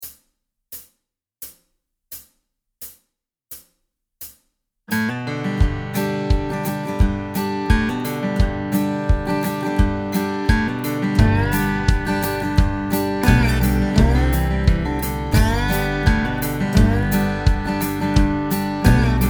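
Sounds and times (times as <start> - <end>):
modern country music: 4.9 - 19.2.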